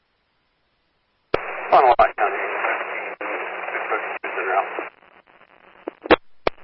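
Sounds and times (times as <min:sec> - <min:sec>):
static hiss on a sheriff's two-way radio channel: 0:01.3 - 0:06.6
speech: 0:01.7 - 0:02.2.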